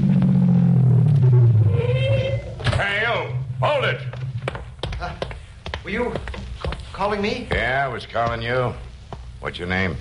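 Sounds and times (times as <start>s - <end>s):
higher tone climbing: 0.0s - 4.5s
car coming up from behind: 0.0s - 4.8s
speech: 5.9s - 6.3s, 7.0s - 9.9s.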